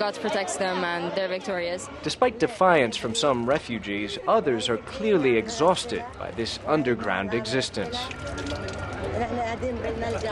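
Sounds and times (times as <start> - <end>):
speech: 0.0 - 10.3
water splashing as dishes are washed in a gutter: 7.7 - 9.3.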